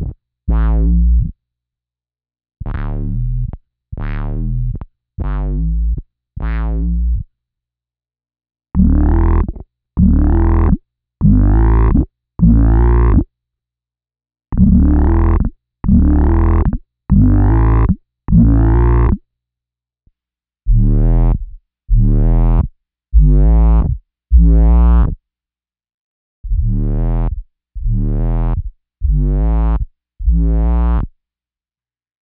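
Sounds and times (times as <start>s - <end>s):
bass guitar through BOSS OC-2 octave pedal, normal and squared: 0.0s - 1.4s, 2.6s - 7.3s, 8.8s - 13.3s, 14.5s - 19.2s, 20.7s - 25.2s, 26.4s - 31.2s.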